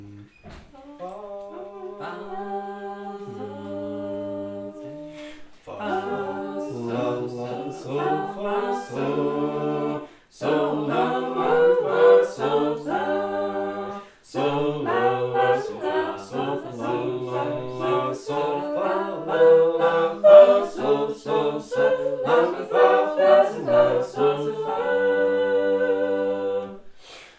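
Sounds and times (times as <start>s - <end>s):
Texas small group singing sacred harp: 0.7s - 27.0s.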